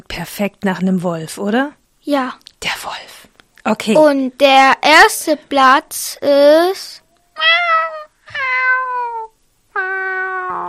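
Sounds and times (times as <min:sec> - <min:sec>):
speech: 0:00.0 - 0:07.8
kitten meowing: 0:07.4 - 0:10.6.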